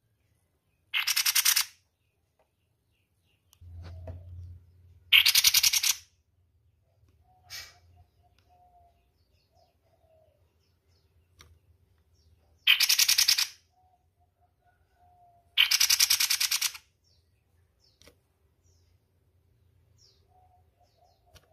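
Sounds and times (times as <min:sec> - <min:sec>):
spiderhunter harsh rattling bursts of rapid pulses: 0:00.9 - 0:01.8, 0:05.1 - 0:06.0, 0:12.6 - 0:13.6, 0:15.6 - 0:16.8.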